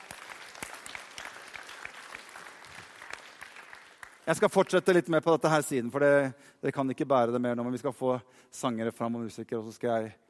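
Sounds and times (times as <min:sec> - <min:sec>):
audience applause: 0:00.0 - 0:04.5
speech: 0:04.3 - 0:10.2.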